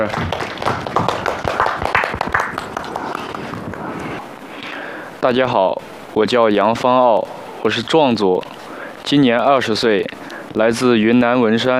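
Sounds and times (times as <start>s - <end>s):
speech: 0.0s - 0.4s, 5.2s - 8.5s, 9.1s - 11.7s
audience clapping to welcome a dancer at a show: 0.0s - 4.2s.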